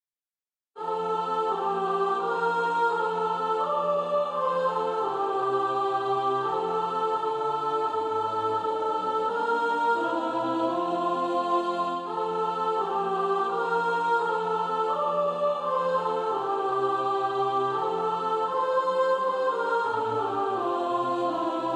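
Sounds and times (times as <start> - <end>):
soprano singing practice music: 0.8 - 21.7.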